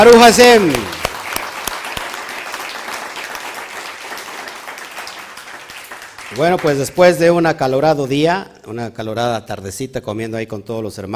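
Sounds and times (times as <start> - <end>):
speech: 0.0 - 1.0, 6.4 - 11.1
loud applause: 0.0 - 6.9.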